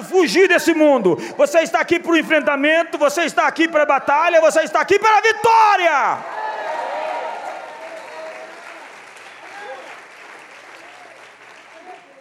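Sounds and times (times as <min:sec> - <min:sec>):
speech: 0:00.1 - 0:06.3
round of applause: 0:06.2 - 0:12.1.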